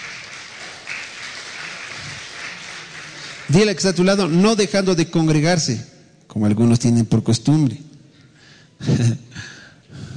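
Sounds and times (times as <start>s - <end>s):
audience applause: 0.0s - 4.1s
speech: 3.5s - 7.9s, 8.8s - 9.6s.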